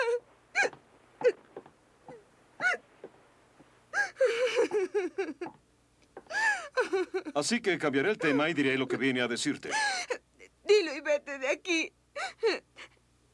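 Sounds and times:
woman crying in a sobbing fit: 0:00.0 - 0:01.4, 0:02.6 - 0:02.8, 0:03.9 - 0:05.5, 0:06.3 - 0:07.4, 0:08.2 - 0:08.6, 0:09.7 - 0:10.9, 0:12.2 - 0:13.0
speech: 0:07.4 - 0:10.1.

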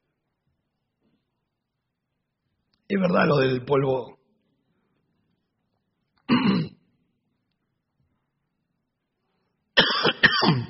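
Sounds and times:
speech: 0:02.9 - 0:04.2
person coughing: 0:06.3 - 0:06.8, 0:09.8 - 0:10.6
person clearing throat: 0:06.3 - 0:06.9, 0:09.8 - 0:10.6.

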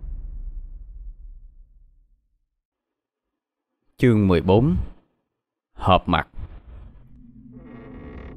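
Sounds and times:
speech: 0:04.0 - 0:04.9, 0:05.8 - 0:06.4
wooden door creaking: 0:06.6 - 0:08.3.

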